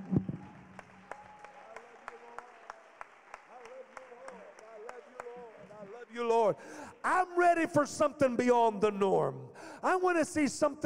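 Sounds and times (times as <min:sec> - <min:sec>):
audience clapping hands: 0:00.0 - 0:07.4
speech: 0:06.2 - 0:10.8.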